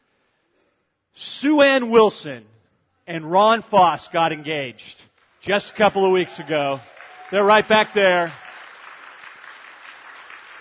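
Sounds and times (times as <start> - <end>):
speech: 1.4 - 2.5, 3.1 - 8.4
audience applause celebrating an engagement announcement: 5.5 - 10.5.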